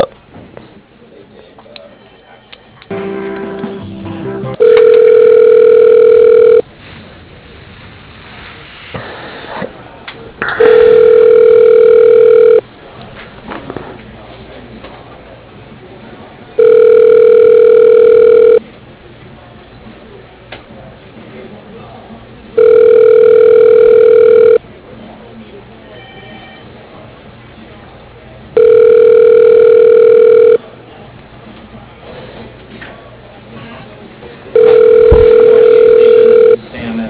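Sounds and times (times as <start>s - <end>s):
telephone line ringing tone during call transfer: 4.6s - 6.6s, 10.6s - 12.6s, 16.6s - 18.6s, 22.6s - 24.6s, 28.6s - 30.6s, 34.6s - 36.6s.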